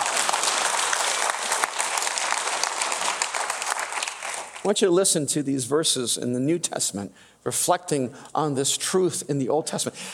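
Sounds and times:
audience applause: 0.0s - 4.6s
speech: 4.6s - 10.1s.

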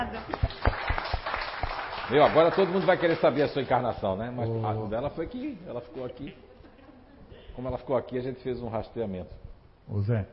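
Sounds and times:
audience applause: 0.0s - 3.7s
speech: 2.1s - 6.5s, 7.6s - 10.3s.

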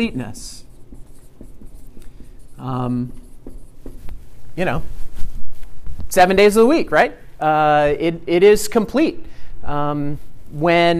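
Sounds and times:
speech: 0.0s - 0.6s, 2.6s - 3.2s, 4.6s - 5.0s, 6.1s - 10.9s
writing numbers by hand: 0.0s - 4.5s.

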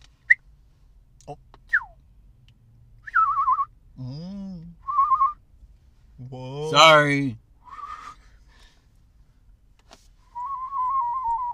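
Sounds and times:
speech: 1.3s - 1.5s, 6.7s - 7.4s
burp through a whistling silencer gadget: 3.0s - 3.7s, 7.7s - 8.2s, 10.4s - 11.5s.

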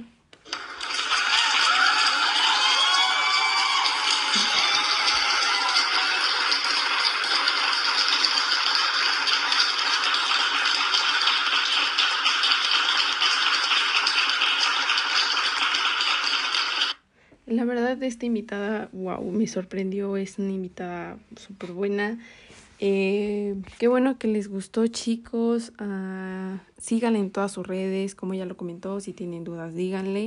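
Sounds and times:
audience applause: 0.4s - 17.0s
speech: 17.6s - 30.2s.

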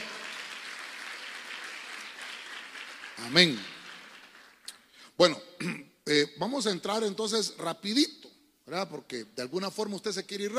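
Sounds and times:
audience clapping: 0.0s - 5.0s
speech: 3.2s - 3.7s, 5.2s - 10.5s.

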